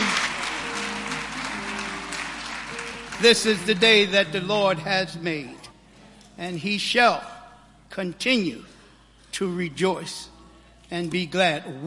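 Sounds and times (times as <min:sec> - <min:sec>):
congregation clapping hands in praise at a church service: 0:00.0 - 0:04.8
speech: 0:03.2 - 0:05.6, 0:06.4 - 0:07.3, 0:07.9 - 0:08.7, 0:09.4 - 0:10.3, 0:10.9 - 0:11.8.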